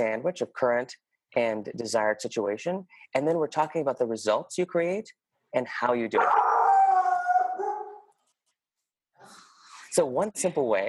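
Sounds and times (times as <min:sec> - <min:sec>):
speech: 0:00.0 - 0:06.5, 0:09.9 - 0:10.8
dog howling: 0:06.2 - 0:08.1.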